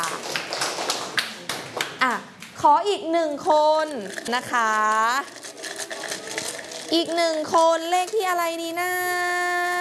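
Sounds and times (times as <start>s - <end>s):
pupils clapping for a classmate in a classroom: 0.0s - 2.5s
speech: 2.6s - 5.4s, 6.9s - 9.7s.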